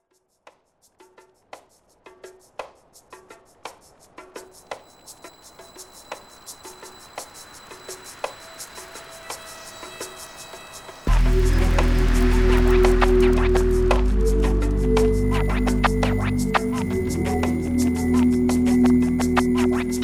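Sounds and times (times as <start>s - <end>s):
ambient music: 5.3s - 20.0s.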